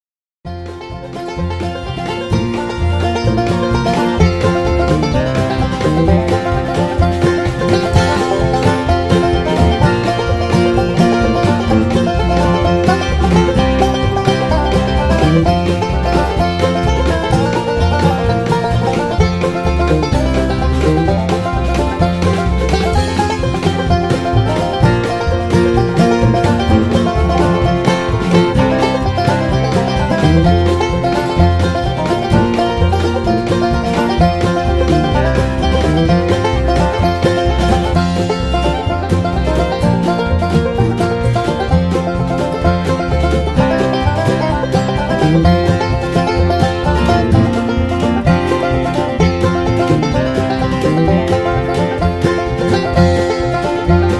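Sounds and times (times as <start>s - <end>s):
instrumental music without backing vocals: 0.5s - 54.1s.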